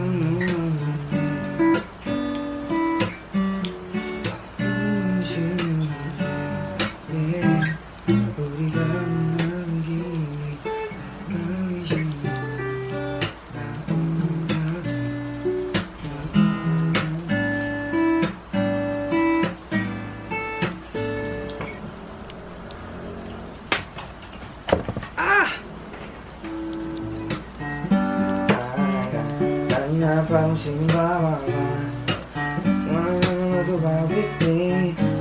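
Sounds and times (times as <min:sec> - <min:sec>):
person singing: 0:00.0 - 0:01.9, 0:04.6 - 0:18.3, 0:25.1 - 0:25.7, 0:27.9 - 0:35.1
guitar strumming: 0:00.0 - 0:35.1
steady rain patter: 0:00.0 - 0:35.1.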